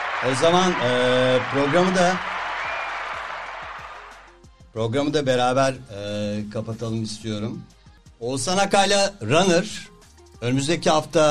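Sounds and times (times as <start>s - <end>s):
hands clapping: 0.0s - 4.3s
speech: 0.2s - 2.3s, 4.8s - 11.3s.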